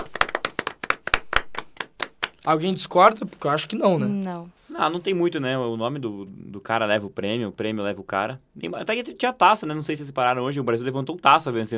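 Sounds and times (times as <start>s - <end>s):
clapping: 0.0s - 2.5s
speech: 2.4s - 11.7s.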